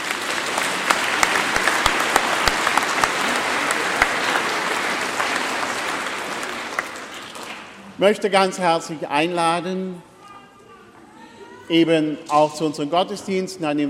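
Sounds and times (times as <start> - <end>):
audience clapping: 0.0 - 7.9
speech: 8.0 - 10.1, 11.7 - 13.8.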